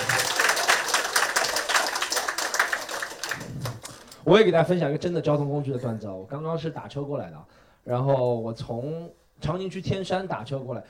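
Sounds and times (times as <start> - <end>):
audience applause: 0.0 - 4.0
speech: 4.3 - 10.8.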